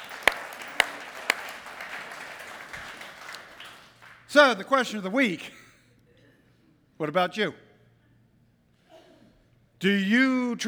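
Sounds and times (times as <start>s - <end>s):
audience clapping: 0.0s - 4.8s
speech: 4.3s - 5.6s, 7.0s - 7.6s, 9.8s - 10.6s.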